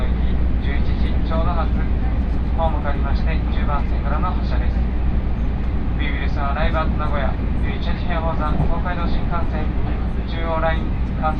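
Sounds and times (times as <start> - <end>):
people talking on a train: 0.0 - 4.8, 6.0 - 11.3
Tokaido Line local train rumble: 0.0 - 11.3.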